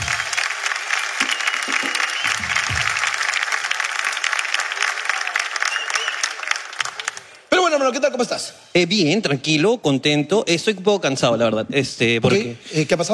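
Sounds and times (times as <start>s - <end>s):
loud crowd applause: 0.0s - 7.5s
speech: 7.9s - 13.1s.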